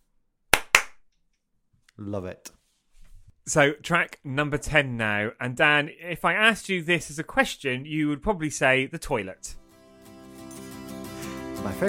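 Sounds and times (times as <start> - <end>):
double clap in a song: 0.5 - 1.0
speech: 2.0 - 2.6, 3.4 - 9.6, 11.6 - 11.8.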